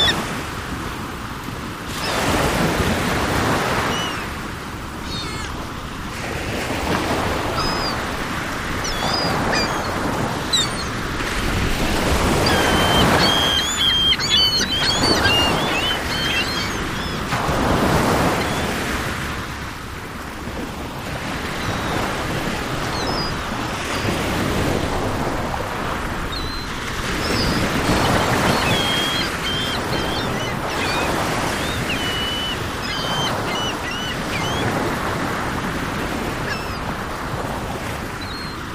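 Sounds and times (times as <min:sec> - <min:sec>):
seagulls calling: 0:00.0 - 0:00.4, 0:03.4 - 0:05.8, 0:06.5 - 0:18.9, 0:21.2 - 0:24.7, 0:26.3 - 0:37.0, 0:38.2 - 0:38.7
ocean waves: 0:00.0 - 0:38.7.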